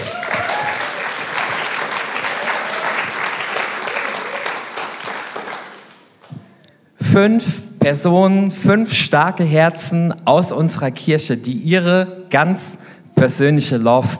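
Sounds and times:
audience applause: 0:00.0 - 0:06.6
speech: 0:07.2 - 0:14.1.

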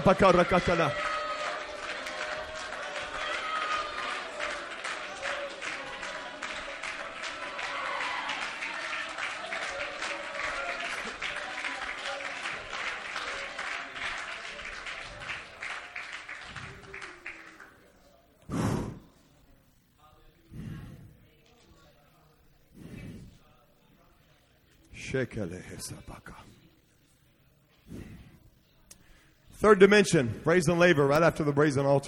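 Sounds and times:
speech: 0:00.0 - 0:01.0, 0:25.2 - 0:26.6, 0:29.6 - 0:32.0
many voices calling out and cheering: 0:00.0 - 0:17.9
audience clapping: 0:00.0 - 0:18.2.

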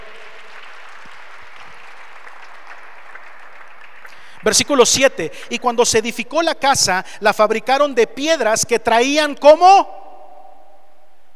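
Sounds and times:
audience applause: 0:00.0 - 0:04.7
speech: 0:04.4 - 0:10.0.

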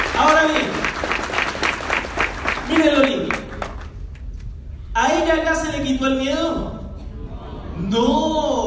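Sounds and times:
audience applause: 0:00.0 - 0:03.9
speech: 0:05.3 - 0:06.8, 0:07.8 - 0:08.5.

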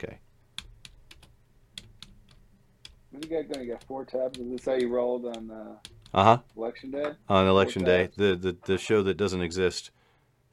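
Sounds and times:
speech: 0:00.0 - 0:00.2, 0:03.2 - 0:10.5
typing on a computer keyboard: 0:00.6 - 0:06.7.

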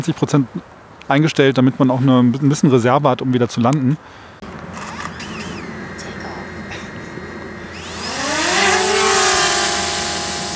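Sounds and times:
speech: 0:00.0 - 0:04.5
drone rotors buzzing while hovering overhead: 0:04.4 - 0:10.5.

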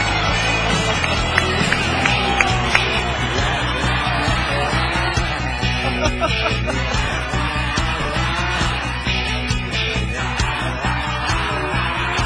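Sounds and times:
applause: 0:00.2 - 0:04.2
laughter: 0:00.4 - 0:12.1.

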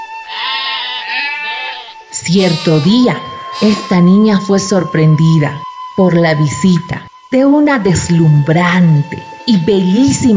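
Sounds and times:
sheep bleating: 0:00.2 - 0:04.1
speech: 0:02.3 - 0:10.3.

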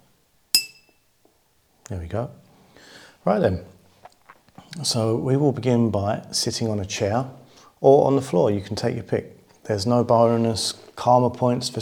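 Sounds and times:
pen striking an empty bottle: 0:00.6 - 0:01.0
speech: 0:01.9 - 0:03.8, 0:04.7 - 0:11.8.

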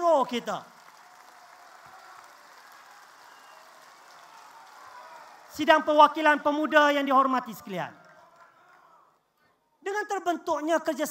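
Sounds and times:
audience applause: 0:00.0 - 0:06.4, 0:07.9 - 0:09.2
speech: 0:00.2 - 0:00.8, 0:05.6 - 0:08.0, 0:09.8 - 0:11.0.

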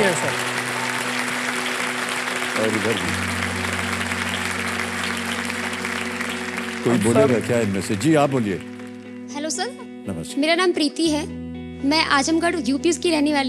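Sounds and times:
studio audience applause: 0:00.0 - 0:09.5
speech: 0:02.6 - 0:03.5, 0:06.8 - 0:08.7, 0:09.6 - 0:13.4.

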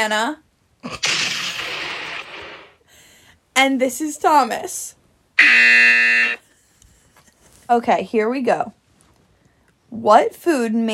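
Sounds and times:
speech: 0:00.0 - 0:01.1, 0:03.6 - 0:06.0, 0:07.7 - 0:08.8, 0:09.9 - 0:10.9
quiz buzzer: 0:05.4 - 0:06.4.

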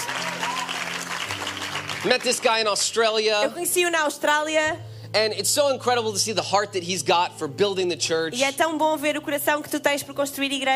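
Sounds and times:
audience applause: 0:00.0 - 0:03.0
speech: 0:02.0 - 0:10.7.

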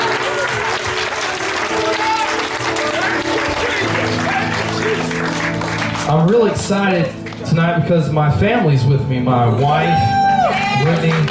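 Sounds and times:
hand clapping: 0:00.0 - 0:07.5, 0:10.8 - 0:11.2
speech: 0:06.1 - 0:10.2, 0:10.8 - 0:11.2.

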